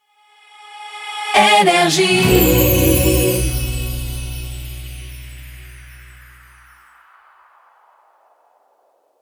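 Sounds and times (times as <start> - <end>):
jingle: 2.1 - 6.8.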